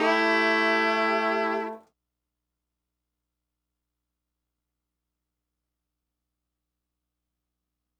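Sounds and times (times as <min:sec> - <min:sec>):
70s analog funk horns: 0:00.0 - 0:01.8.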